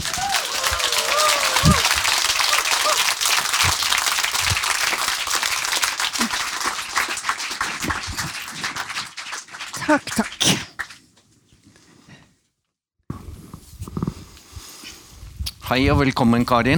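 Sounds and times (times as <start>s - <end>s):
audience applause welcoming a guest: 0.0s - 11.0s
speech: 9.9s - 10.6s, 15.7s - 16.7s.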